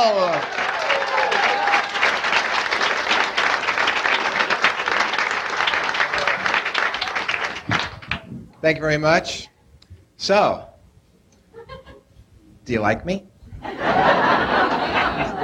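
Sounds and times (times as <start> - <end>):
audience applause: 0.0 - 8.3, 13.8 - 15.4
speech: 8.6 - 9.5, 10.2 - 10.7, 12.7 - 13.8
laughter: 11.5 - 12.1, 13.6 - 15.4.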